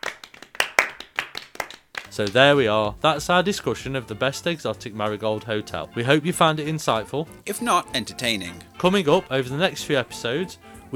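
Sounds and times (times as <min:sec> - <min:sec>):
slow hand clapping: 0:00.0 - 0:04.2
speech: 0:02.1 - 0:10.9.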